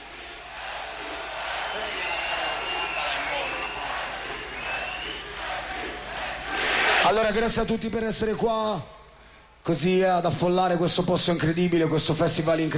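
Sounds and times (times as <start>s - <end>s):
large festival crowd cheering and clapping: 0.0s - 7.1s
scattered high shouts and whistles from the festival crowd: 1.0s - 5.6s
speech: 7.1s - 9.0s, 9.6s - 12.7s.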